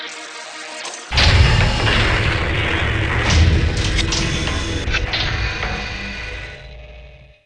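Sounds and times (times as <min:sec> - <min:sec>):
door: 0:01.1 - 0:07.0.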